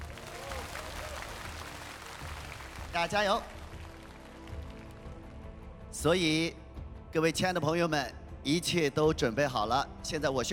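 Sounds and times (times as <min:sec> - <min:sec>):
audience applause at a televised singing competition: 0:00.0 - 0:05.2
music: 0:00.0 - 0:10.5
speech: 0:02.9 - 0:03.6, 0:06.0 - 0:10.5.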